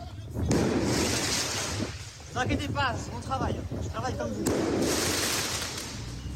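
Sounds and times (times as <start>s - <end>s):
firework mortar shots fired at firefighters: 0.4s - 2.3s, 4.4s - 6.3s
speech: 2.4s - 5.3s.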